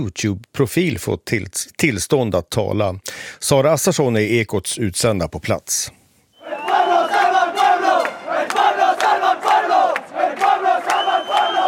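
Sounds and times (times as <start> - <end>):
speech: 0.0 - 6.0
large crowd chanting at a street demonstration: 6.4 - 11.6.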